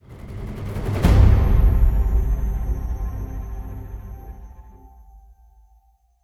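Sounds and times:
tension music stop: 0.1 - 5.4.

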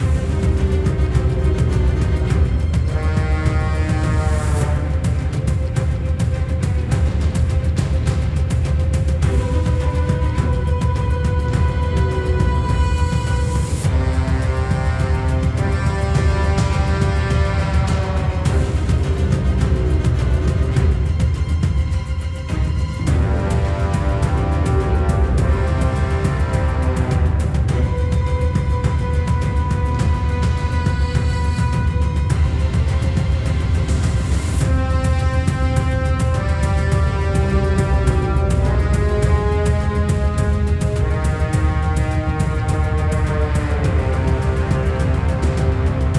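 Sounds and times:
normal combat game music: 0.0 - 46.1.

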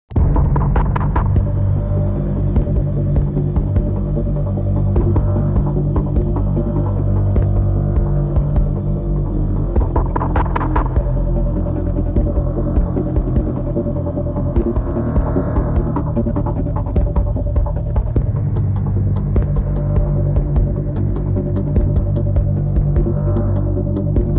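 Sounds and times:
battle music loop: 0.2 - 24.3.

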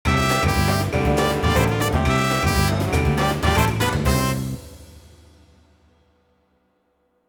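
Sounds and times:
pachinko fanfare: 0.1 - 4.8.

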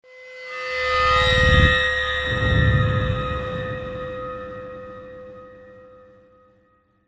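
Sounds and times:
eerie swell: 1.0 - 6.2.

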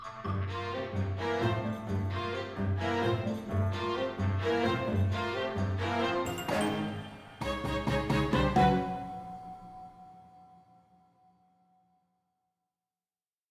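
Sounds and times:
cave field battle music: 0.3 - 9.8.

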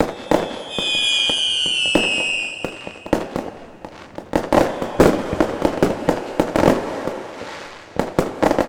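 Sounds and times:
fireworks exploding in an arena: 0.0 - 8.6.

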